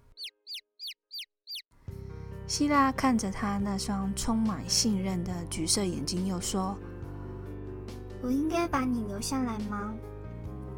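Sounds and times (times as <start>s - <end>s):
cuckoo calling: 0.0s - 1.7s
speech: 2.5s - 6.9s, 8.2s - 10.1s.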